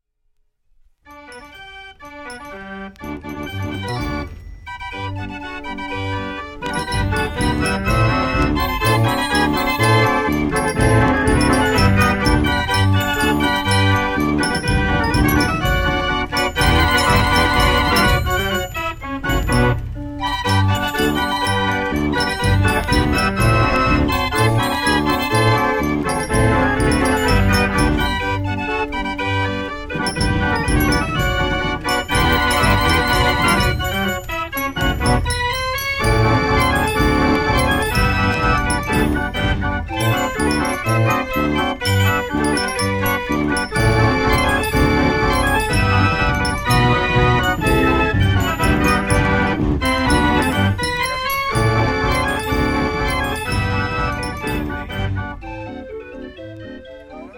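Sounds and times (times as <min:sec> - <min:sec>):
Dutch street barrel organ playing: 0:01.1 - 0:57.3.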